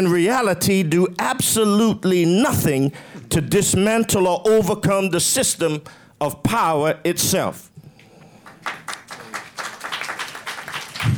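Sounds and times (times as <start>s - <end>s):
speech: 0.0s - 7.7s
audience clapping: 8.3s - 11.1s.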